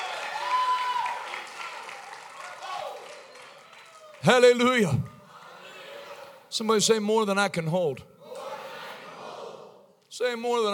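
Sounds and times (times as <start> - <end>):
audience clapping hands: 0.0 - 4.9
speech: 4.2 - 5.1, 6.6 - 8.1, 10.2 - 10.7.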